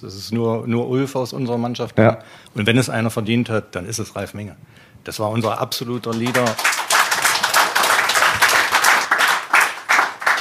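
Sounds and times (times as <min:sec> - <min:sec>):
speech: 0:00.0 - 0:06.8
audience applause: 0:06.1 - 0:10.3.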